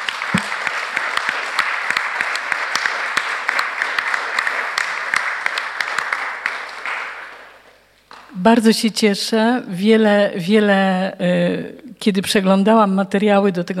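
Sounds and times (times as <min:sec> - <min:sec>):
audience applause: 0:00.0 - 0:07.5
speech: 0:08.4 - 0:13.7.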